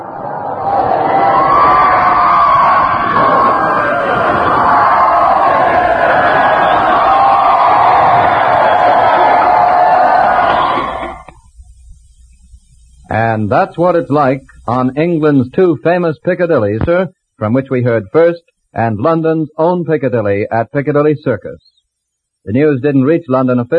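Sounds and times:
large crowd cheering and shouting in the street: 0:00.0 - 0:11.3
speech: 0:13.4 - 0:21.8, 0:22.4 - 0:23.7.

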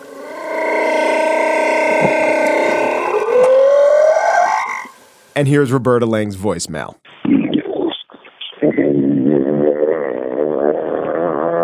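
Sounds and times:
slowed-down humpback whale mating call: 0:00.0 - 0:05.0, 0:08.6 - 0:11.6
speech: 0:05.4 - 0:07.0.

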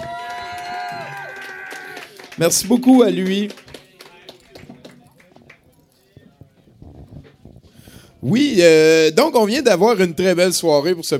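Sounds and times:
cheering voices and whoops: 0:00.0 - 0:02.2
audience applause: 0:00.0 - 0:05.8
speech: 0:02.4 - 0:03.6, 0:08.3 - 0:11.1.

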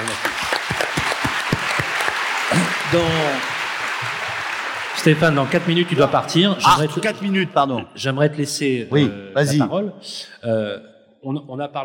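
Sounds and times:
audience applause: 0:00.0 - 0:07.4
speech: 0:02.9 - 0:03.5, 0:05.0 - 0:11.8.

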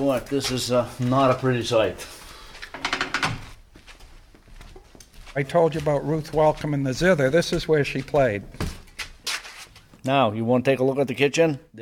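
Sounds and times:
speech: 0:00.0 - 0:02.2, 0:05.4 - 0:08.7, 0:10.0 - 0:11.7
door opening: 0:02.7 - 0:03.6.

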